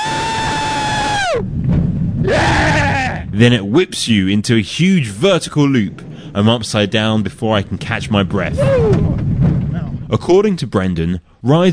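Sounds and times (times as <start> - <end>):
roller coaster riders screaming: 0.0 - 1.5, 2.2 - 3.3, 8.5 - 9.2
speech: 3.3 - 9.3, 10.1 - 11.7.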